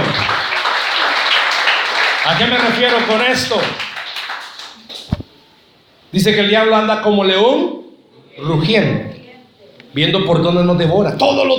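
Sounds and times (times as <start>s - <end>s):
audience applause: 0.0s - 5.1s
speech: 2.3s - 3.9s, 6.1s - 7.8s, 8.4s - 9.2s, 9.9s - 11.5s.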